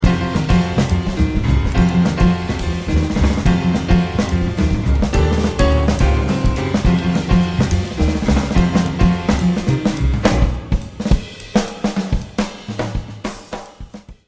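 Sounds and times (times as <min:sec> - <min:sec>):
drum: 0:00.0 - 0:14.2.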